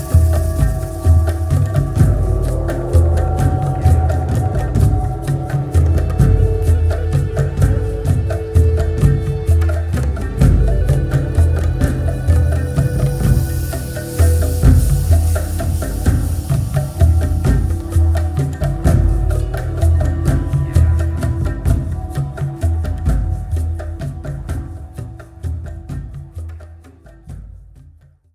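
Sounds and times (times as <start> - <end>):
drum call: 0.0 - 26.4.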